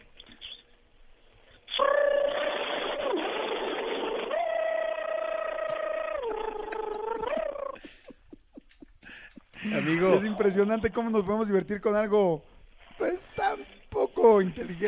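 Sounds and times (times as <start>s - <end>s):
voice imitating a blender: 1.8s - 3.5s, 4.2s - 7.8s, 9.6s - 11.6s, 13.0s - 14.8s
laughter: 5.3s - 10.5s
speech: 9.6s - 14.8s.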